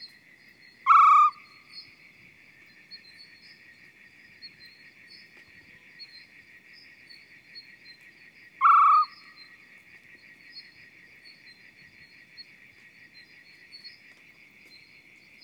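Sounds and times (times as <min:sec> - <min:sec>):
male Arabian Scops Owl hooting: 0:00.9 - 0:01.4, 0:08.6 - 0:09.2.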